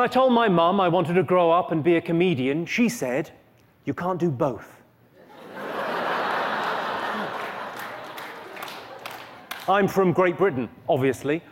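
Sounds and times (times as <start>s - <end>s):
speech: 0.0s - 4.8s, 9.7s - 11.5s
laughter: 5.2s - 9.6s
smattering of audience applause: 6.2s - 9.8s.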